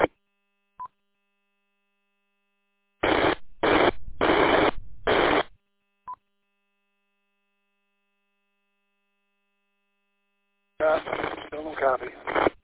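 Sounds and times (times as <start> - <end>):
radio repeater hiss: 3.0 - 5.6, 10.8 - 12.6.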